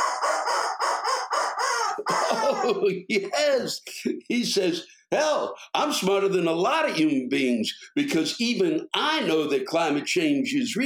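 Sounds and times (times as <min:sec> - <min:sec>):
rubber chicken toy squawk: 0:00.0 - 0:02.8
laughter: 0:02.0 - 0:04.3
speech: 0:02.0 - 0:10.8.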